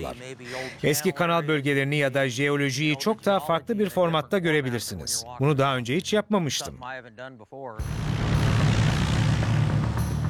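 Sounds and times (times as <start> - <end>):
speech: 0.0 - 8.3
small airplane propeller engine roaring before takeoff: 7.8 - 10.2.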